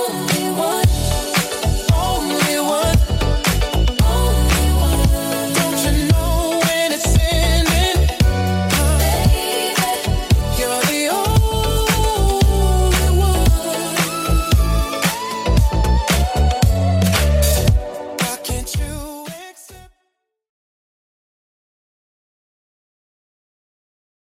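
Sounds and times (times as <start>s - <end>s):
114 BPM beat: 0.2s - 19.5s.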